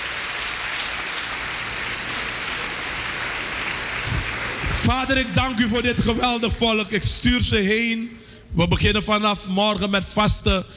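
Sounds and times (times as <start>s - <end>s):
audience applauding: 0.0s - 5.8s
speech: 4.9s - 10.7s.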